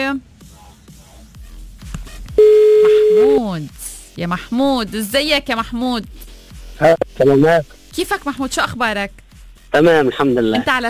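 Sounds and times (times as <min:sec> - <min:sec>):
speech: 0:00.1 - 0:00.3, 0:03.1 - 0:10.8
steady mid-pitched telephone line tone: 0:02.4 - 0:03.4.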